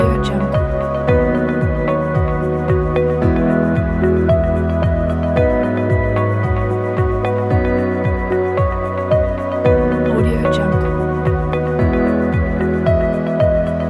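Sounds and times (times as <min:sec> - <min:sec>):
calm ambient floating loop: 0:00.0 - 0:13.8.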